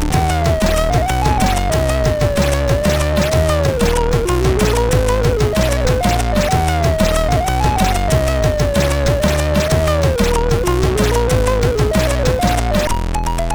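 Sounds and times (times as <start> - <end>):
SID MOS6581R3 chip sound: 0.1 - 13.5.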